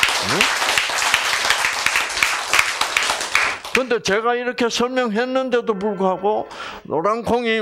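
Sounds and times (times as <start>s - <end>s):
audience applause: 0.0s - 3.8s
speech: 0.2s - 0.7s, 3.8s - 7.6s.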